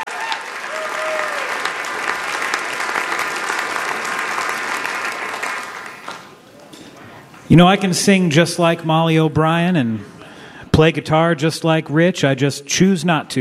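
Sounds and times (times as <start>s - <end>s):
audience applause: 0.0s - 6.4s
speech: 7.5s - 10.2s, 10.8s - 13.3s.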